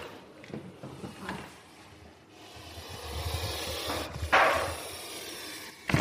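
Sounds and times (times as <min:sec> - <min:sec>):
snake biting the microphone: 0:02.3 - 0:05.9.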